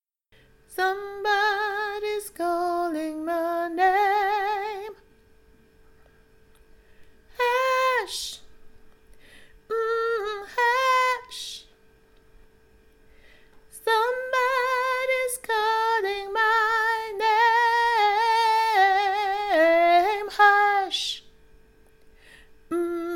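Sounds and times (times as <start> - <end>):
soprano singing: 0.7 - 5.0, 7.3 - 8.5, 9.7 - 11.7, 13.7 - 21.3, 22.7 - 23.1.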